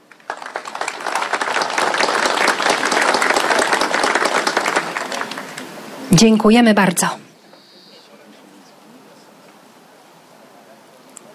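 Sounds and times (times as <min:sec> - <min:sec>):
audience applause: 0:00.0 - 0:06.1
speech: 0:06.1 - 0:07.2.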